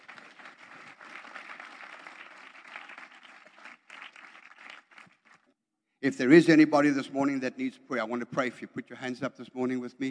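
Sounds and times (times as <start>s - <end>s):
applause: 0.0s - 5.6s
speech: 6.0s - 10.0s.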